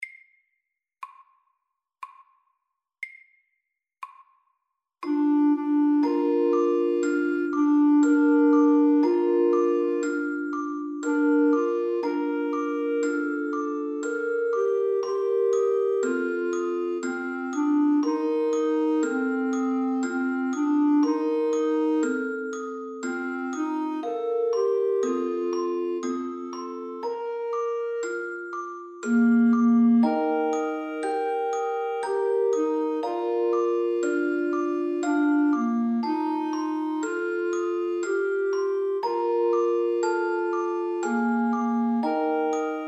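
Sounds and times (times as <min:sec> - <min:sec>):
slow lullaby: 0:05.0 - 0:42.8.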